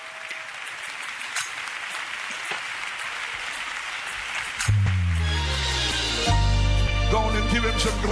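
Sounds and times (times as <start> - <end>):
audience clapping: 0.0 - 6.2
low sustained keyboard or organ notes: 4.7 - 8.0
speech: 7.1 - 8.0.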